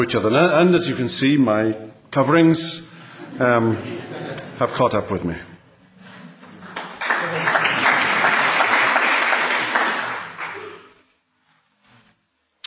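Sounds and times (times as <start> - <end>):
speech: 0.0 - 5.5
laughter: 3.0 - 5.0, 5.9 - 10.9
crowd applauding: 6.2 - 11.0.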